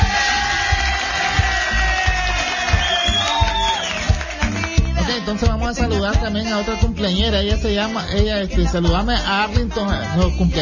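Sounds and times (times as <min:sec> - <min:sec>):
crowd cheering with whoops and shouts: 0:00.0 - 0:04.8
applause: 0:00.0 - 0:05.3
speech: 0:05.3 - 0:10.6.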